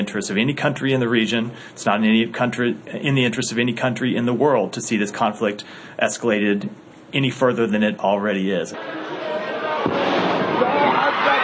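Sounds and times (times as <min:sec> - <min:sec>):
speech: 0:00.1 - 0:10.0
crowd noise and voices: 0:08.7 - 0:11.4
explosion blast at a cemetery: 0:09.8 - 0:10.7.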